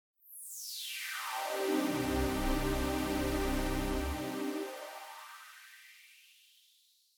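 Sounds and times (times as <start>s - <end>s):
24dB high-pass Waldorf filter resonance: 1.8s - 5.6s.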